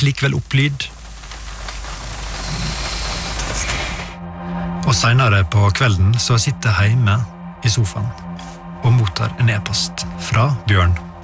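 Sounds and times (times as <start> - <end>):
speech: 0.0 - 1.0, 4.9 - 11.1
rain drumming against a car window: 0.0 - 4.2
low constant rumble: 0.0 - 11.2.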